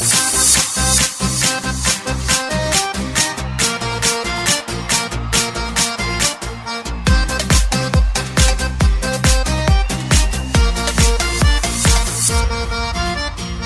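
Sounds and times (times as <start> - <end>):
accordion: 0.0 - 13.6.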